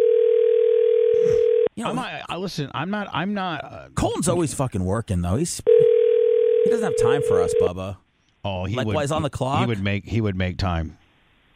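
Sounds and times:
telephone dial tone: 0:00.0 - 0:01.7, 0:05.7 - 0:07.7
speech: 0:01.8 - 0:05.8, 0:06.6 - 0:11.0.

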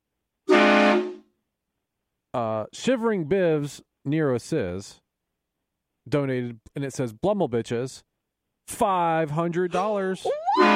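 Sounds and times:
train horn sound effect: 0:00.5 - 0:01.3, 0:10.6 - 0:10.7
speech: 0:02.3 - 0:05.0, 0:06.1 - 0:08.1, 0:08.7 - 0:10.7.

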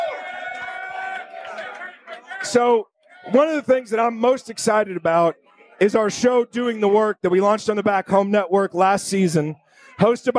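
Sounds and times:
crowd cheering: 0:00.0 - 0:07.0
speech: 0:02.4 - 0:10.3.

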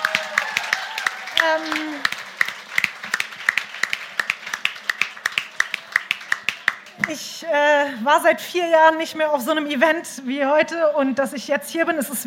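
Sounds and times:
person cheering: 0:00.0 - 0:02.1
crowd applauding: 0:00.0 - 0:07.3
speech: 0:01.4 - 0:02.1, 0:07.1 - 0:12.2.

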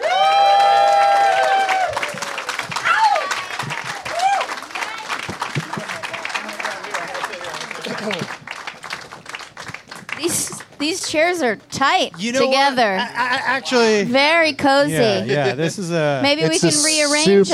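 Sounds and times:
whoops and cheers: 0:00.0 - 0:05.0
crowd applauding: 0:00.0 - 0:12.5
laughter: 0:03.2 - 0:04.2, 0:05.5 - 0:08.5, 0:15.0 - 0:17.5
speech: 0:11.1 - 0:17.5.

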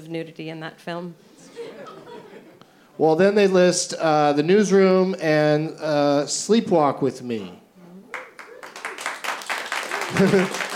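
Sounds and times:
speech: 0:00.1 - 0:02.1, 0:03.0 - 0:07.6, 0:10.1 - 0:10.7
laughter: 0:01.4 - 0:02.6, 0:09.8 - 0:10.7
audience applause: 0:08.1 - 0:10.7.

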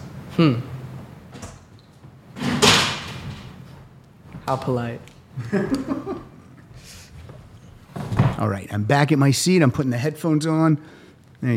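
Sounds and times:
speech: 0:00.4 - 0:00.7, 0:04.5 - 0:06.1, 0:08.4 - 0:11.5
refrigerator door thudding shut: 0:02.4 - 0:03.4
laughter: 0:05.4 - 0:06.5.

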